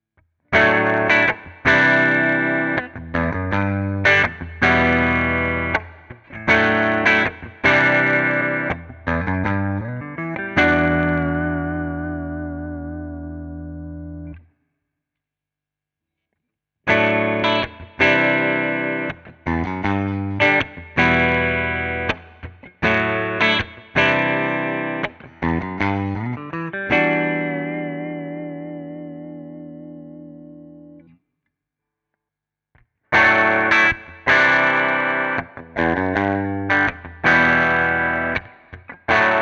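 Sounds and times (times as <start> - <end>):
clean Telecaster Deluxe electric guitar: 0.5 - 14.5, 16.8 - 31.2, 32.8 - 39.3.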